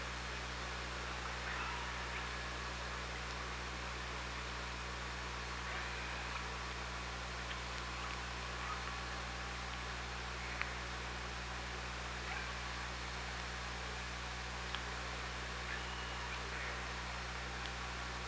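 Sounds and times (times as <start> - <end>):
killer whale pulsed calls: 0.1 - 18.2.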